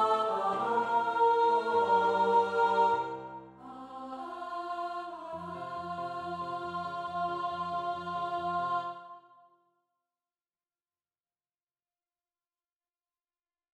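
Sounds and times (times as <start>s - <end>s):
piano: 0.0s - 9.2s.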